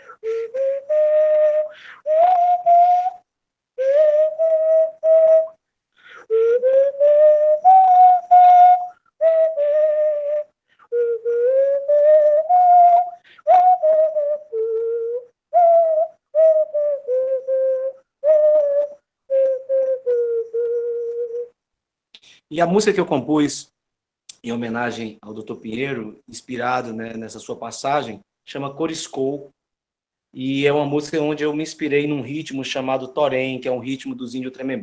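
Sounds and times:
simple indigenous Amazonian whistle used to communicate with birds being blown: 0.0s - 21.5s
speech: 22.6s - 23.7s, 24.4s - 29.6s, 30.3s - 34.8s.

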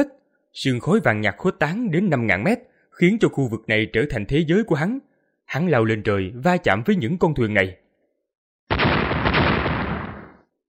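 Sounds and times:
speech: 0.0s - 7.8s
explosion: 8.7s - 10.5s.

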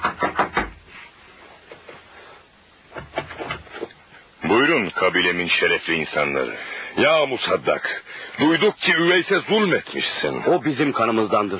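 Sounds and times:
knocking on the wooden door of a house: 0.0s - 0.8s
speech: 4.7s - 11.5s.

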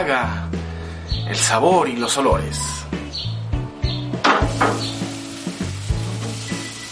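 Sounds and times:
speech: 0.0s - 0.6s, 1.2s - 3.0s
cowboy steak sizzling on a grill over fire: 4.4s - 6.8s
fire crackling: 4.4s - 6.8s.

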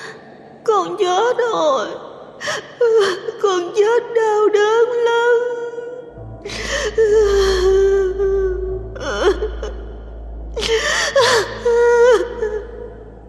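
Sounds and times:
speech: 0.8s - 5.6s, 6.4s - 7.7s
person sobbing and wailing: 6.5s - 13.1s.

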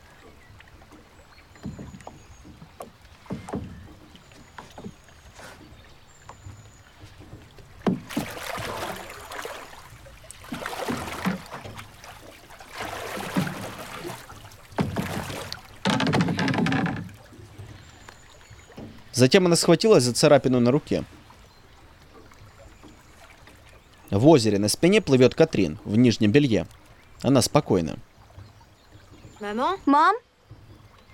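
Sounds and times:
oar strokes splashing as a girl rows a boat: 0.0s - 31.1s
speech: 19.2s - 21.2s, 24.2s - 28.1s, 29.4s - 30.3s.

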